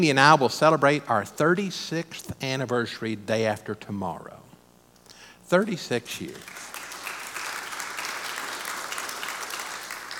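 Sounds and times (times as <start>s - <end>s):
speech: 0.0s - 4.4s, 5.5s - 6.7s
audience applause: 6.4s - 10.1s.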